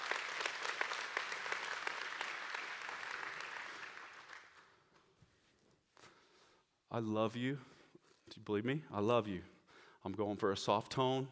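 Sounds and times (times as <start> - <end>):
audience clapping: 0.0 - 5.1
speech: 6.9 - 7.7, 8.4 - 11.3.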